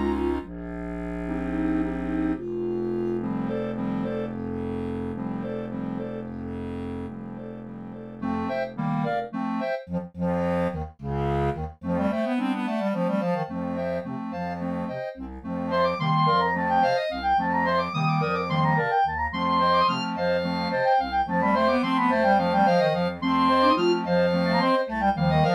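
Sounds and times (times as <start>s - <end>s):
clarinet choir playing: 0.0s - 8.2s, 15.8s - 25.5s
harmonic waltz on contrabass clarinet with clarinet choir: 0.0s - 25.5s.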